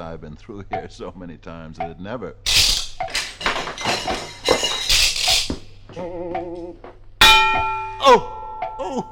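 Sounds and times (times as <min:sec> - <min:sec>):
speech: 0:00.0 - 0:02.8, 0:03.5 - 0:04.6, 0:05.9 - 0:06.8, 0:08.0 - 0:09.0
swinging clock pendulum hitting a head with a metallic clang: 0:02.5 - 0:05.8, 0:07.2 - 0:08.0
wavering vocal groan: 0:06.0 - 0:06.8.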